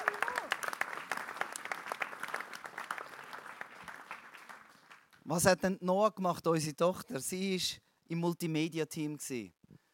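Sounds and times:
audience applause: 0:00.0 - 0:05.2
speech: 0:05.3 - 0:09.6.

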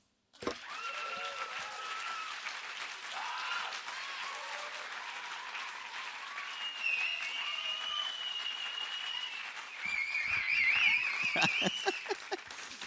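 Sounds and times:
audience applause: 0:00.5 - 0:12.8
laughter: 0:11.1 - 0:12.8.

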